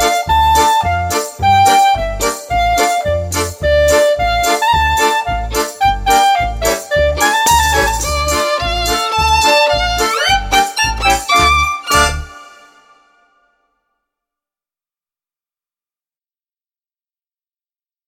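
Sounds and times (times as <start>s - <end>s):
Hanukkah instrumental song for children: 0.0s - 13.6s.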